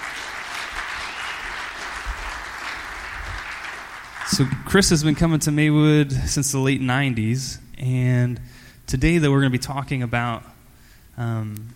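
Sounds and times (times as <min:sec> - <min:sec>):
audience applause: 0:00.0 - 0:04.8
speech: 0:04.3 - 0:10.5, 0:11.2 - 0:11.7.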